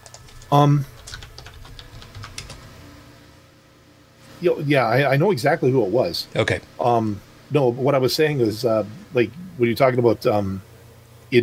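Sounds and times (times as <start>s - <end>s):
computer keyboard typing: 0.0s - 2.8s
speech: 0.5s - 0.9s, 4.4s - 10.7s.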